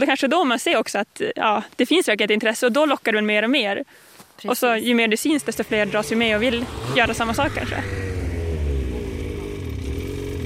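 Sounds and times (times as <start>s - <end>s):
speech: 0.0s - 8.2s
snowmobile engine running at light throttle: 5.2s - 10.4s.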